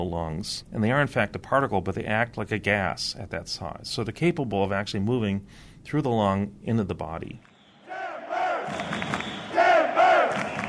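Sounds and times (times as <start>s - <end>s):
speech: 0.0s - 7.5s
soccer fans cheering and chanting: 7.6s - 10.6s
steady roar of the stadium crowd: 7.6s - 10.6s.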